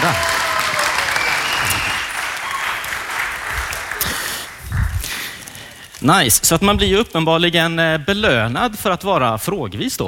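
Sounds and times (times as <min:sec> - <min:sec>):
audience applause: 0:00.0 - 0:05.8
speech: 0:00.1 - 0:00.4, 0:06.0 - 0:10.0.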